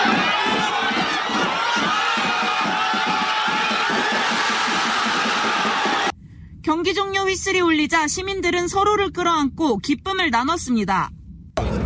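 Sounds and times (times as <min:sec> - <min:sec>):
large crowd cheering in a public square: 0:00.0 - 0:06.1
pulsing rhythm: 0:00.0 - 0:06.1
speech: 0:06.8 - 0:11.7.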